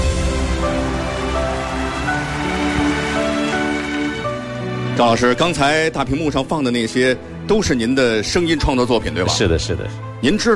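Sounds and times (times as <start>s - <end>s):
audience applause: 0.0s - 5.0s
speech: 5.0s - 10.5s.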